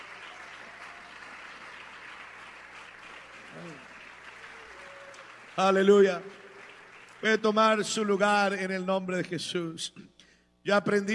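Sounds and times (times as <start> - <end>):
audience applause: 0.0 - 7.6
speech: 5.6 - 6.4, 7.2 - 11.1.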